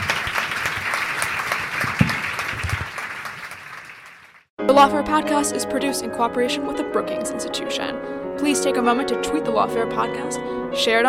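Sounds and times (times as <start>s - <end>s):
audience applause: 0.0s - 4.5s
speech: 4.7s - 11.0s.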